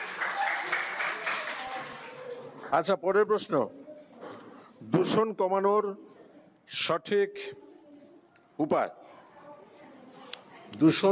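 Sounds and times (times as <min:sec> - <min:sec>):
audience clapping for a quiz contestant at an environment day event: 0:00.0 - 0:02.2
speech: 0:02.7 - 0:03.9, 0:04.8 - 0:06.1, 0:06.7 - 0:07.7, 0:08.6 - 0:09.0, 0:10.7 - 0:11.0.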